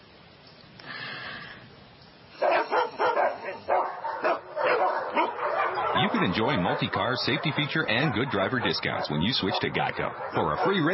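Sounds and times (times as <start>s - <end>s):
dog barking: 2.4s - 10.9s
speech: 6.1s - 10.9s.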